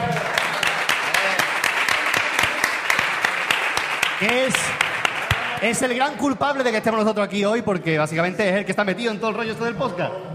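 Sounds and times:
audience applause: 0:00.0 - 0:05.9
speech: 0:04.2 - 0:04.9, 0:05.6 - 0:10.3.

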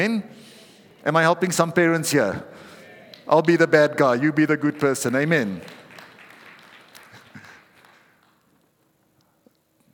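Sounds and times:
speech: 0:00.0 - 0:00.4, 0:01.0 - 0:02.7, 0:03.3 - 0:05.8
faint hand clapping: 0:04.8 - 0:08.7.

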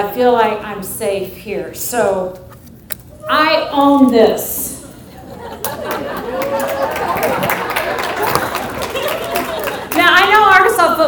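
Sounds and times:
speech: 0:00.0 - 0:02.5, 0:03.3 - 0:04.8, 0:05.4 - 0:07.6
laughter: 0:04.9 - 0:10.0
audience clapping: 0:05.6 - 0:10.4.

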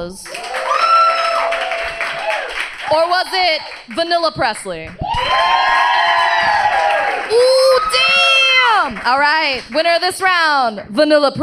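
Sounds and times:
speech: 0:00.0 - 0:00.4, 0:02.9 - 0:05.8, 0:08.8 - 0:11.4
audience applause: 0:00.2 - 0:03.9, 0:05.0 - 0:10.1.

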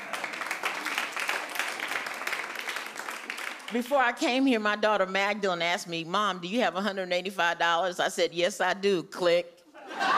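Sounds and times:
audience applause: 0:00.0 - 0:03.8
speech: 0:03.7 - 0:10.1
laughter: 0:09.7 - 0:10.1.

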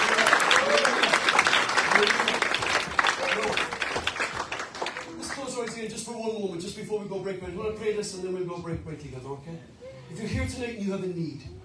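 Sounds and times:
audience applause: 0:00.0 - 0:05.8
speech: 0:06.3 - 0:11.6.

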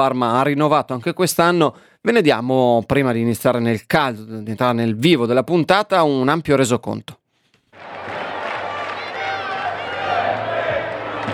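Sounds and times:
speech: 0:00.0 - 0:07.2
fans applauding in stadium stand: 0:07.7 - 0:11.3
fans chanting in stadium stand: 0:08.1 - 0:11.3.

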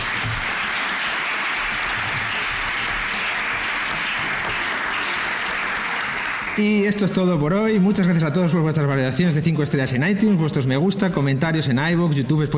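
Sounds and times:
audience applause: 0:00.0 - 0:07.3
speech: 0:06.6 - 0:12.5.

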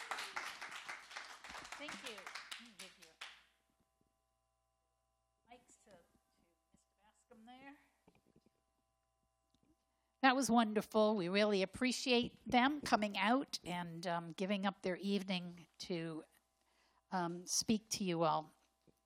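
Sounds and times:
audience round of applause: 0:00.0 - 0:03.2
speech: 0:01.8 - 0:02.9, 0:10.3 - 0:16.3, 0:17.1 - 0:18.6.

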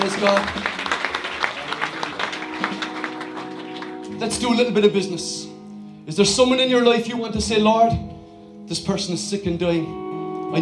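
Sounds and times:
audience applause: 0:00.0 - 0:04.2
speech: 0:00.1 - 0:00.8, 0:04.2 - 0:05.5, 0:06.1 - 0:08.1, 0:08.7 - 0:10.6.

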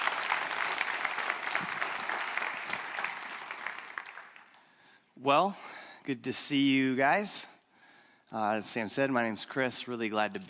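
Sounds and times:
audience applause welcoming a guest pastor: 0:00.0 - 0:04.8
speech: 0:05.2 - 0:07.5, 0:08.3 - 0:10.4.

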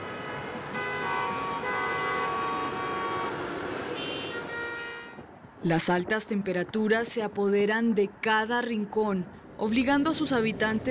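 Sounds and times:
overlapping car horns honking in chaotic street traffic: 0:00.0 - 0:05.3
speech: 0:05.6 - 0:10.9.

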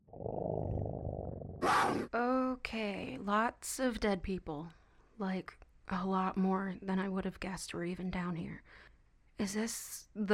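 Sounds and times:
lion-like creature roaring in a video game: 0:00.1 - 0:02.1
speech: 0:01.9 - 0:10.3.

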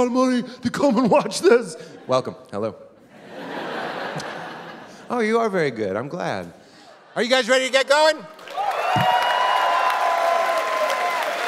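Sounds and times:
speech: 0:00.0 - 0:02.9, 0:05.1 - 0:06.6, 0:07.2 - 0:08.4
laughter: 0:03.0 - 0:05.1
crowd applauding at a live comedy show: 0:08.3 - 0:11.4.

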